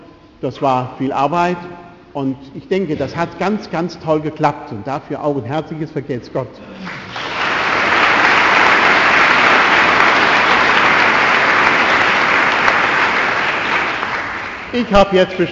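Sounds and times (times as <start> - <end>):
speech: 0.4 - 7.3, 14.7 - 15.4
audience applause: 6.8 - 14.9.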